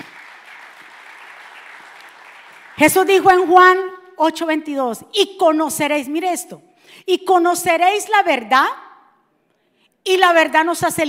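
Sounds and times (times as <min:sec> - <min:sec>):
loud applause: 0:00.0 - 0:03.0
speech: 0:02.8 - 0:08.8, 0:10.0 - 0:11.0.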